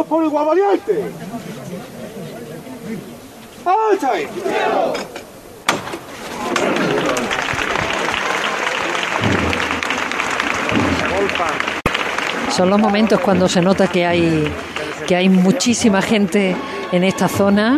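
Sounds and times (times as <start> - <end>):
speech: 0.0 - 1.5, 2.9 - 5.2, 11.2 - 11.7, 12.5 - 17.7
crowd applauding: 6.4 - 17.7.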